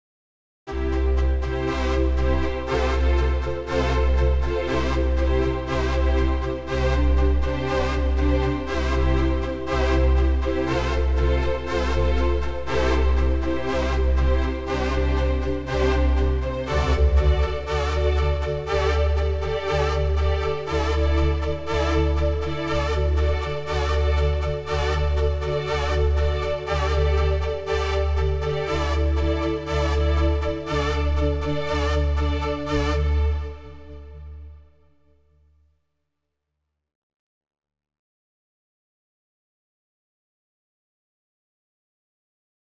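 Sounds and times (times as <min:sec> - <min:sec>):
workstation synthesized strings: 0:00.7 - 0:34.7.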